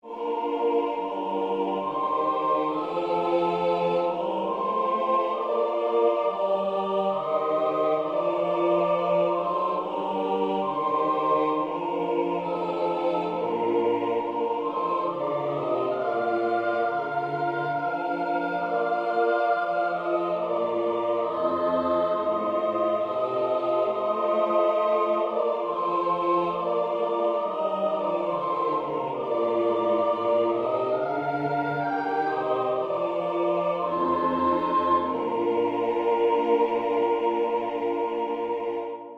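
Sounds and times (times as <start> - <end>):
national anthem: 0.0 - 39.1.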